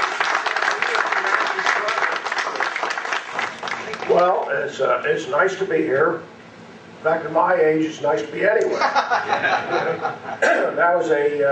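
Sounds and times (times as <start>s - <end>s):
audience applause for a speaker: 0.0s - 4.5s
speech: 4.2s - 6.4s, 7.0s - 11.5s
laughter: 8.7s - 10.4s.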